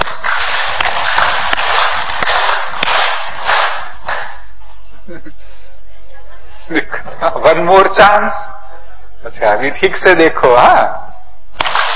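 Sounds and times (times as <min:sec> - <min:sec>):
crowd clapping together: 0:00.0 - 0:04.4, 0:11.6 - 0:11.9
laughter: 0:04.7 - 0:09.3
speech: 0:06.7 - 0:08.5, 0:09.3 - 0:11.0.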